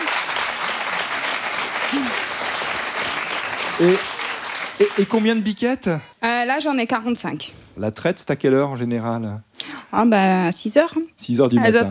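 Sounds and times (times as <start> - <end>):
audience applause: 0.0 - 5.6
speech: 3.8 - 4.1, 4.8 - 11.8.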